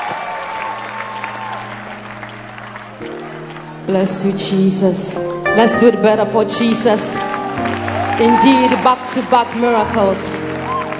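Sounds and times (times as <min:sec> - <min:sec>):
audience applause: 0:00.0 - 0:04.2, 0:06.6 - 0:10.9
speech: 0:03.9 - 0:10.6.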